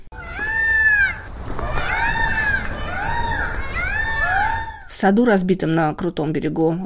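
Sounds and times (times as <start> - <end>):
peacocks crying: 0.0 - 5.0
speech: 5.0 - 6.8.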